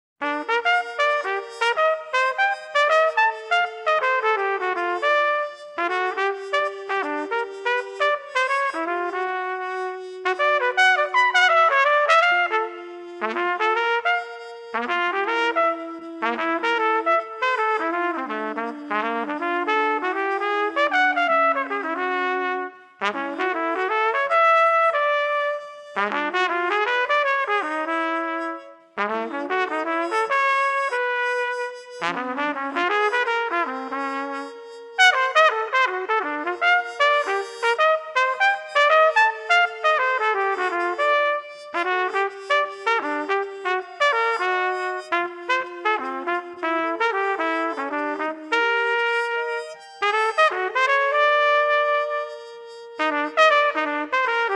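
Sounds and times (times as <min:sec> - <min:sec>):
jazz etudes: 0:00.2 - 0:54.5.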